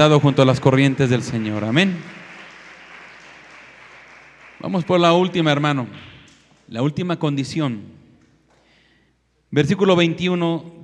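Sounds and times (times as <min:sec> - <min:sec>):
speech: 0:00.0 - 0:02.2, 0:04.6 - 0:06.1, 0:06.7 - 0:08.0, 0:09.5 - 0:10.8
audience clapping loudly: 0:00.0 - 0:06.7.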